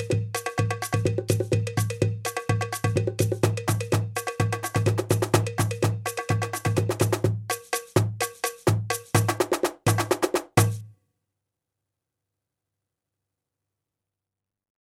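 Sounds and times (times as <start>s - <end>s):
rhythmic beat: 0.0s - 10.9s.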